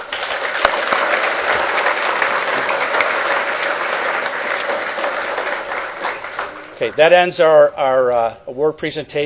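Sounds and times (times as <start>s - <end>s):
audience applause: 0.0s - 7.0s
speech: 6.8s - 9.2s.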